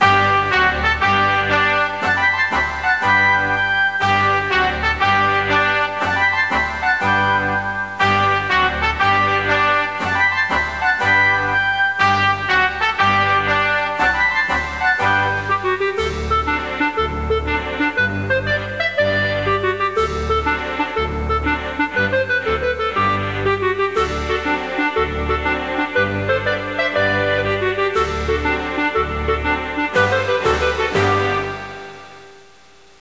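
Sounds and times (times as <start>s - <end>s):
national anthem music in stereo: 0.0s - 32.9s.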